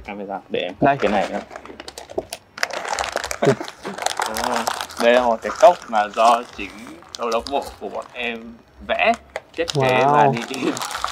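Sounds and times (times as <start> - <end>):
speech: 0.0 - 1.8, 3.4 - 3.7, 5.0 - 11.0
gift wrapping crinkling and tearing as a package is ripped open: 1.0 - 11.0
laughter: 3.4 - 4.4.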